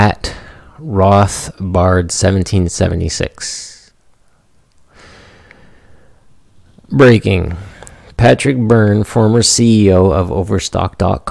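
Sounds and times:
speech: 0.0s - 3.7s, 6.9s - 11.2s
deep breath in: 0.3s - 0.8s, 4.9s - 6.3s.

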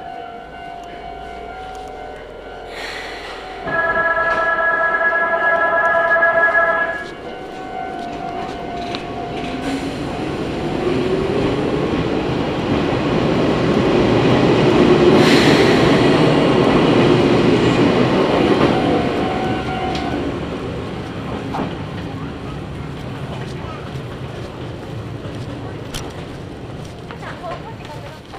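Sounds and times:
Izuhakone Railway Daiyūzan Line train wheels rumbling on track: 0.0s - 28.3s
two-tone chime: 3.5s - 7.1s.

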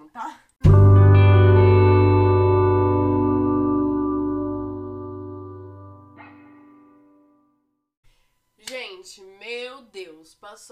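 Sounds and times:
speech: 0.2s - 0.7s, 10.5s - 10.7s
effects-laden musical chord as a short transition: 0.6s - 7.5s.

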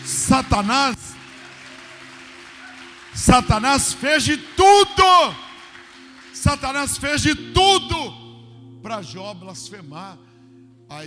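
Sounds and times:
audience applause: 0.0s - 7.0s
speech: 0.2s - 1.1s, 3.2s - 5.5s, 6.4s - 8.2s, 8.8s - 10.3s.

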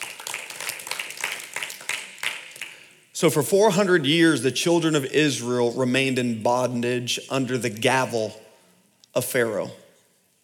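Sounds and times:
audience hand clapping: 0.0s - 3.0s
speech: 3.2s - 8.4s, 9.2s - 9.8s.

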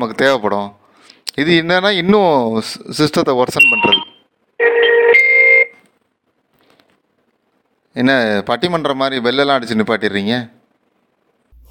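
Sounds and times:
speech: 0.0s - 0.8s, 1.4s - 4.0s, 8.0s - 10.6s
incoming phone call ringing: 3.6s - 5.8s.

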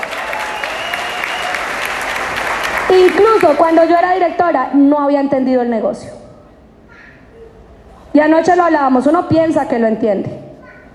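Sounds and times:
audience applause: 0.0s - 4.1s
speech: 2.9s - 6.2s, 8.2s - 10.4s.

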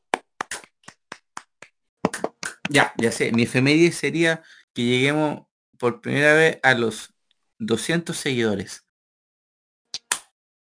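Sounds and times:
brief round of applause from a few hands: 0.0s - 3.5s
speech: 2.7s - 8.8s.

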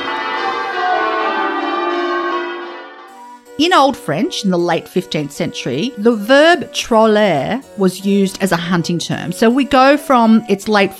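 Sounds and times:
church bells pealing: 0.0s - 10.9s
speech: 3.6s - 10.9s.

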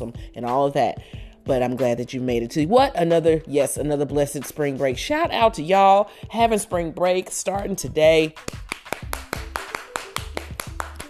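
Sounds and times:
speech: 0.0s - 8.7s
hand claps: 8.3s - 11.0s.

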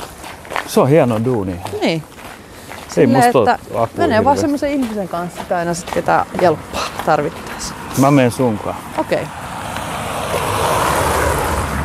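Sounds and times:
speech: 0.7s - 2.1s, 2.9s - 9.4s
passing cars rumbling on road: 3.2s - 11.8s.

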